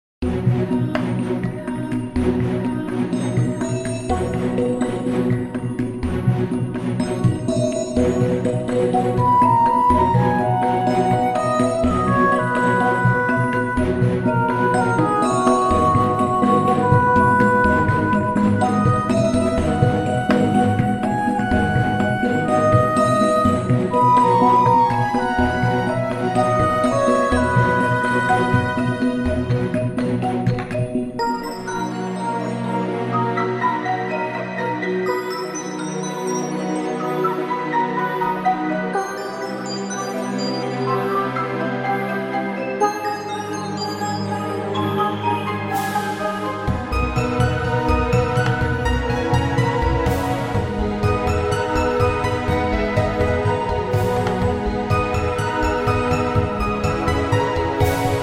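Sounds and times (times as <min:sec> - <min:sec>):
RPG fairy fantasy background music: 0:00.2 - 0:58.2.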